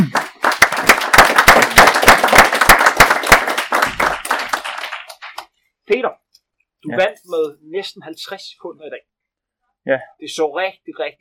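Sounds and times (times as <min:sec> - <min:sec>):
crowd clapping: 0:00.0 - 0:05.6
speech: 0:05.9 - 0:06.2, 0:06.8 - 0:09.1, 0:09.8 - 0:11.1.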